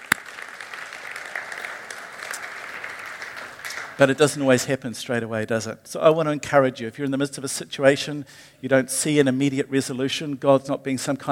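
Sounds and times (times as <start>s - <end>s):
audience clapping: 0.0s - 4.4s
speech: 4.0s - 11.3s.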